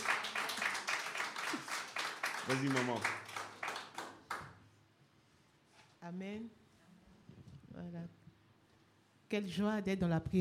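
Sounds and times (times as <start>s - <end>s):
audience applause: 0.0s - 4.5s
speech: 2.4s - 3.2s, 6.1s - 6.6s, 7.8s - 8.2s, 9.3s - 10.3s.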